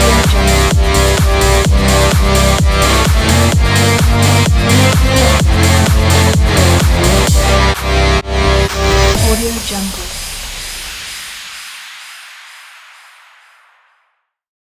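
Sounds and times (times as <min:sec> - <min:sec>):
energetic rock music: 0:00.0 - 0:10.8.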